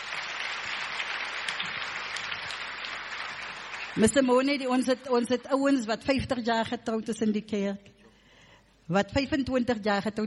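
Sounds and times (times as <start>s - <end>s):
audience applause: 0.0s - 4.1s
speech: 4.0s - 7.9s, 8.9s - 10.2s.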